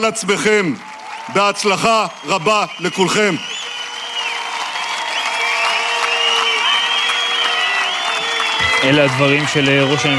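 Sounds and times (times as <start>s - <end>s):
speech: 0.0s - 3.6s, 8.8s - 10.1s
applause from a large crowd: 0.0s - 10.1s
whistles: 1.8s - 9.0s.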